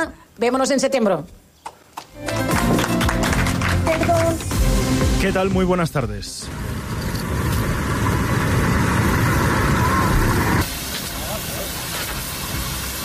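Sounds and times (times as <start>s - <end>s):
speech: 0.0s - 1.4s, 5.2s - 7.5s
firefighting operations at a wildfire: 1.7s - 13.0s.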